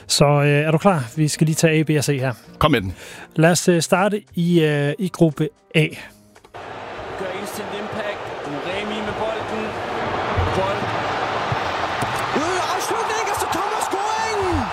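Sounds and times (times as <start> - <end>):
speech: 0.1 - 6.8
football stadium crowd cheering a goal: 6.6 - 14.7.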